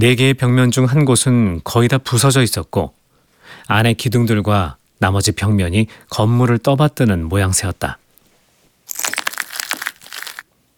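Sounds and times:
speech: 0.0 - 3.0, 3.6 - 8.0
broken light bulb glass crunching underfoot: 4.8 - 10.4.

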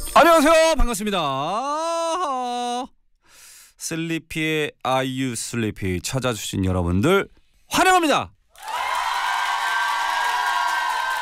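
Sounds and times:
speech: 0.2 - 3.0, 3.8 - 8.7
audience cheering: 8.6 - 11.2.

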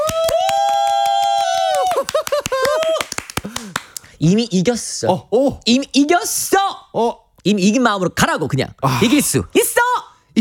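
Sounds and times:
loud vocal cry and whoops: 0.0 - 3.3
audience applause: 0.0 - 3.9
speech: 4.2 - 10.4.

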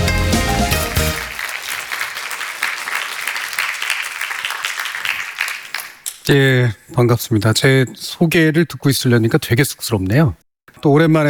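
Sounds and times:
audience applause: 0.0 - 6.0
speech: 6.3 - 11.2.

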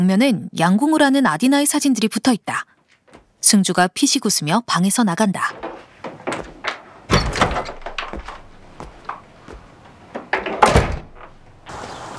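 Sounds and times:
speech: 0.0 - 2.7, 3.4 - 5.8
front gate door of a house swinging open with knocks and clanks: 5.4 - 12.1.

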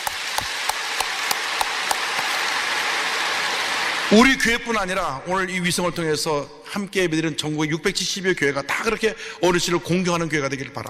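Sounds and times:
audience applause: 0.0 - 4.5
speech: 4.1 - 10.8.

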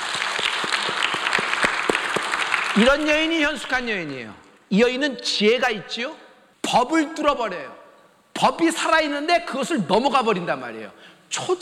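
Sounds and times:
scattered applause: 0.0 - 4.5
church congregation clapping in a steady rhythm: 0.0 - 4.7
speech: 2.8 - 7.8, 8.4 - 11.5.

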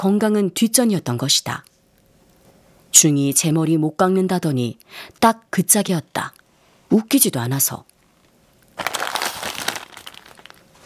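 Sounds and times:
speech: 0.0 - 1.7, 2.9 - 7.9
plastic bag of puffed rice snacks rustling: 8.2 - 10.8.

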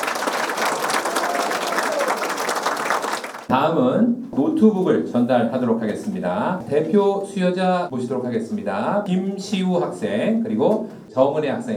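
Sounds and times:
audience cheering and applause at ceremony: 0.0 - 3.5
speech: 3.5 - 11.7.

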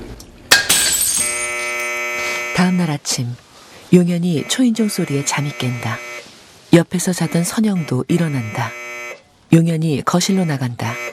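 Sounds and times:
ceramic tile falling from an old wall and shattering: 0.5 - 1.8
speech: 2.6 - 6.1, 6.7 - 8.8, 9.5 - 11.1.

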